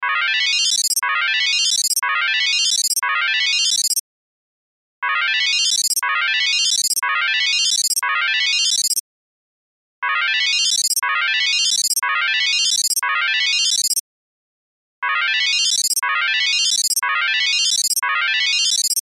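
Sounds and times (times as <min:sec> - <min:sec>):
cell phone ringtone: 0:00.2 - 0:04.0, 0:05.2 - 0:09.0, 0:10.2 - 0:14.0, 0:15.2 - 0:19.0.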